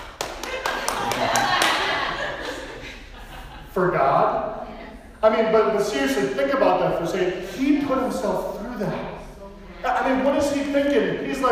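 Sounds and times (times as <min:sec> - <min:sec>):
hands clapping: 0:00.0 - 0:02.2
laughter: 0:00.2 - 0:04.2, 0:09.7 - 0:10.6
speech: 0:03.8 - 0:04.6, 0:05.2 - 0:09.1, 0:09.8 - 0:11.5.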